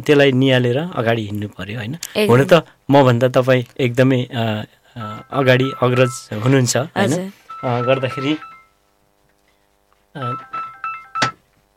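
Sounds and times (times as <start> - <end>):
speech: 0.0 - 8.5, 10.1 - 10.6
telephone ringing in a radio studio: 5.0 - 8.8, 10.2 - 11.4.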